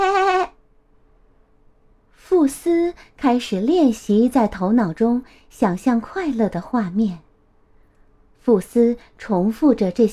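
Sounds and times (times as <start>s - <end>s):
voice imitating a sheep bleat: 0.0s - 0.6s
speech: 2.7s - 7.3s, 8.4s - 10.1s.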